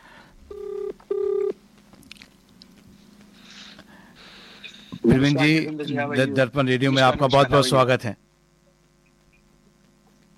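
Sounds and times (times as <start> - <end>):
buzzing telephone ringback tones: 0.5 - 1.6
speech: 5.1 - 8.2.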